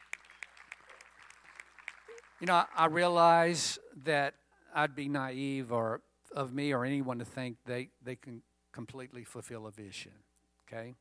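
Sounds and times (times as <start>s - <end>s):
audience hand clapping: 0.0s - 3.5s
speech: 2.4s - 10.9s.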